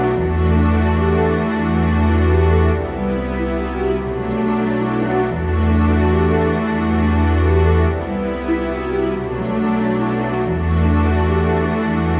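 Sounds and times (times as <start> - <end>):
sad background music for a character story: 0.0 - 12.1.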